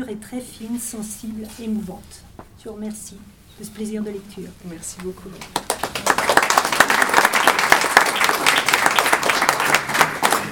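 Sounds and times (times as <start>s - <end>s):
speech: 0.0s - 5.7s
audience applause: 5.6s - 10.5s.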